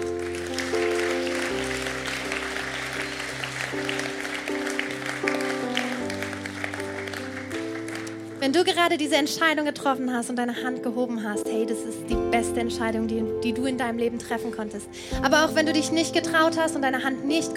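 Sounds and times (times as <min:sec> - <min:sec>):
audience applause: 0:00.0 - 0:08.4
speech: 0:08.4 - 0:17.5.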